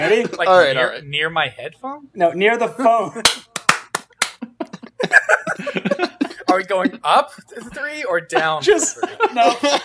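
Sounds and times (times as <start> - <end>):
speech: 0.0 - 3.4, 5.3 - 9.8
group hand clap for sync: 3.5 - 4.4
laughter: 4.4 - 7.0, 8.3 - 9.8.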